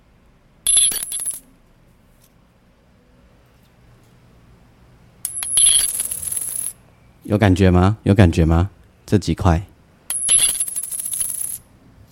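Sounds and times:
five or ten dollar coin dropping with a metallic clink: 0.6 - 1.5, 5.2 - 6.8, 10.1 - 12.1
speech: 7.3 - 9.7.

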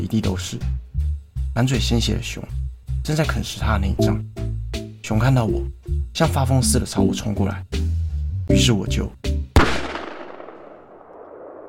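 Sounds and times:
speech: 0.0 - 0.8, 1.6 - 4.4, 5.0 - 7.8, 8.5 - 9.2
gunshot: 9.6 - 11.6.

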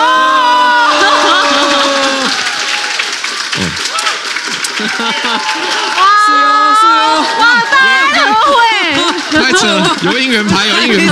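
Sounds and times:
live audience cheering and clapping: 0.0 - 11.0
laughter: 0.6 - 2.4, 4.6 - 6.2, 6.9 - 11.0
speech: 9.6 - 11.0.

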